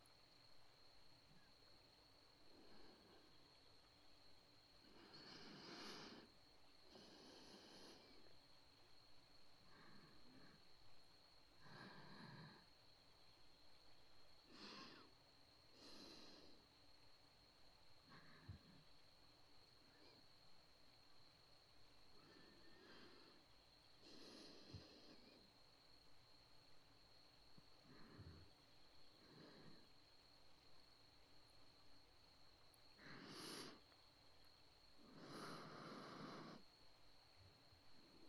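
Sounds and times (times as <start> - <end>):
breathing in the right ear: 2.5 - 3.6, 4.8 - 8.5, 9.6 - 12.9, 14.4 - 16.9, 18.0 - 19.0, 19.8 - 20.4, 22.1 - 25.7, 27.1 - 30.4, 32.9 - 36.8.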